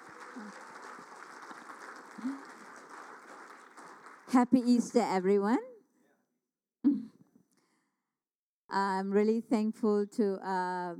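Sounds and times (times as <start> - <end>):
faint cheer or voice: 0.0 - 4.2
audience clapping: 0.0 - 4.8
speech: 0.4 - 0.7, 2.2 - 2.5, 4.3 - 5.7, 8.8 - 10.9.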